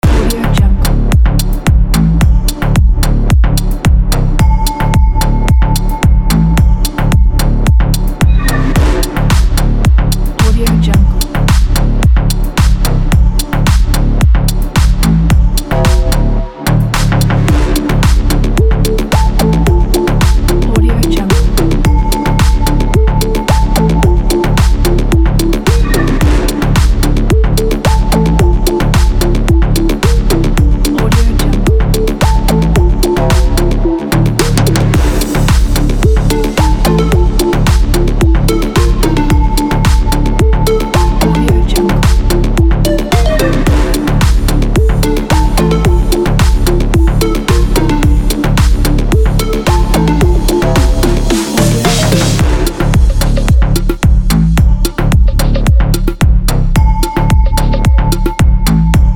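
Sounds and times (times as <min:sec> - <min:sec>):
tech slap bass tune: 0:00.0 - 0:59.1.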